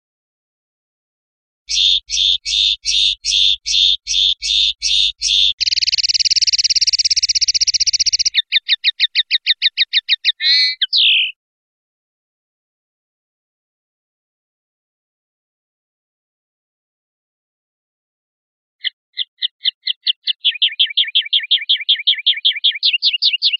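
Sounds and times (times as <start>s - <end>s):
European goldfinch singing: 1.7s - 11.4s, 18.8s - 23.5s.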